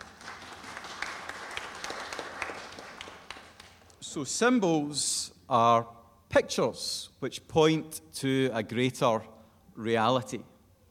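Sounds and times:
group of people applauding: 0.0s - 4.0s
speech: 4.2s - 10.5s.

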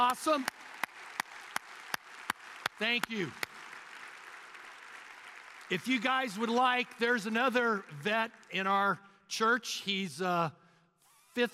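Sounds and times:
speech: 0.0s - 0.6s, 2.8s - 3.4s, 5.7s - 10.6s, 11.4s - 11.5s
audience applause for veterans: 0.0s - 8.0s.

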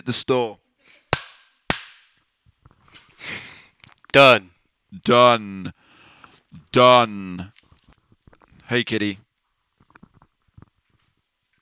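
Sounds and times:
speech: 0.1s - 1.0s, 4.1s - 5.8s, 6.7s - 7.6s, 8.7s - 9.2s
hand clap for audio sync: 1.1s - 2.1s.

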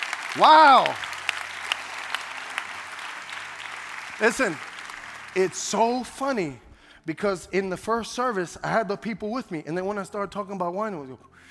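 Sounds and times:
audience clapping: 0.0s - 6.6s
speech: 0.4s - 1.0s, 4.2s - 4.7s, 5.3s - 11.4s.

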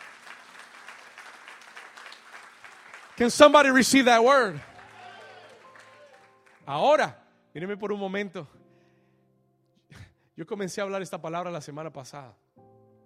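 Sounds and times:
audience applauding loudly: 0.0s - 6.7s
speech: 3.2s - 4.7s, 6.7s - 8.6s, 10.4s - 12.4s.

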